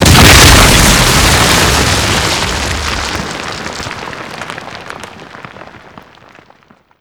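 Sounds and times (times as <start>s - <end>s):
explosion: 0.0s - 5.2s.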